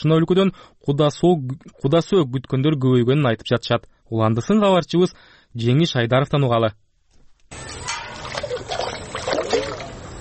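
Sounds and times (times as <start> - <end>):
speech: 0.0 - 6.8
water splashing as a woman carries water from a pond at dawn: 7.5 - 10.2.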